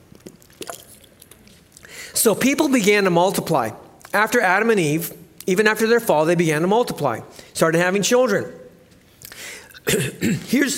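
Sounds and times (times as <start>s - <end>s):
person gulping water: 0.0s - 1.9s
speech: 2.2s - 8.6s, 9.9s - 10.7s.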